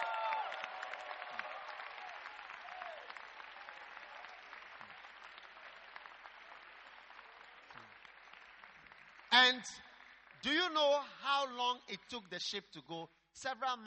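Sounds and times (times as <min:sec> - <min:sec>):
crowd applauding: 0:00.0 - 0:10.8
speech: 0:09.5 - 0:13.8.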